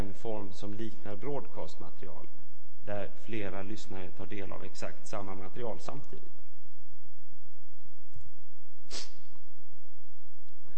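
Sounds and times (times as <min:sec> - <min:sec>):
quiet steady hiss: 0:00.0 - 0:10.7
speech: 0:00.2 - 0:06.4
person sniffling: 0:08.9 - 0:09.3.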